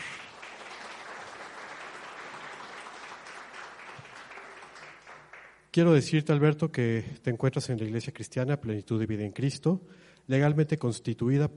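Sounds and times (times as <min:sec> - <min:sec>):
audience applause: 0:00.0 - 0:05.6
speech: 0:05.8 - 0:11.5.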